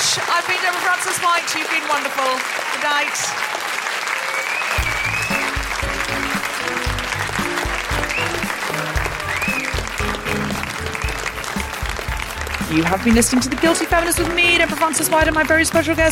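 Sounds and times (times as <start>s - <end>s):
crowd applause: 0.0s - 16.1s
speech: 0.2s - 3.7s, 12.7s - 16.1s
music: 4.8s - 16.1s.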